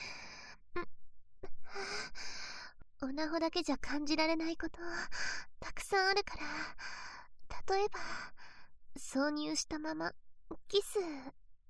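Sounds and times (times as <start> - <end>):
woman breathing: 0.0 - 0.6, 1.6 - 2.8, 4.8 - 5.5, 6.4 - 7.3, 7.9 - 8.7
speech: 3.0 - 7.0, 7.7 - 8.4, 9.0 - 11.4.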